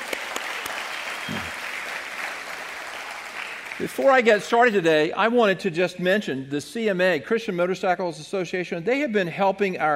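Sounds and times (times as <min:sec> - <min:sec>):
audience applauding: 0:00.0 - 0:04.5
speech: 0:03.8 - 0:09.9.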